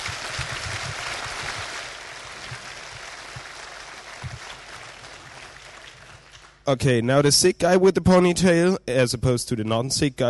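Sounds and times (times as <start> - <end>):
audience applause: 0.0 - 6.6
speech: 6.7 - 10.2.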